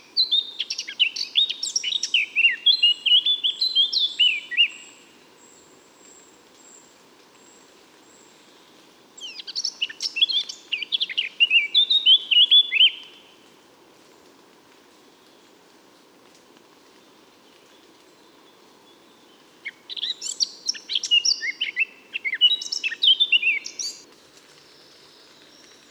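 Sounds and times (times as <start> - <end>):
Eurasian blackcap song: 0.0 - 5.2, 9.2 - 13.2, 17.5 - 25.9.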